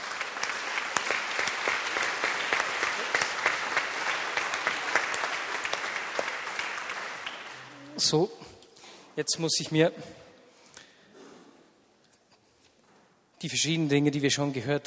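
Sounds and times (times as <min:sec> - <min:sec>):
warm audience applause: 0:00.0 - 0:08.0
speech: 0:08.0 - 0:08.5, 0:09.2 - 0:10.2, 0:13.4 - 0:14.8.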